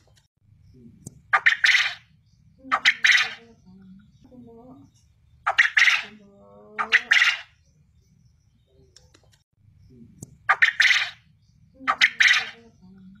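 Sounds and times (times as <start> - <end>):
quail calling in rasping triple phrases: 1.3 - 3.6, 5.5 - 7.6, 10.5 - 11.2, 11.8 - 12.8.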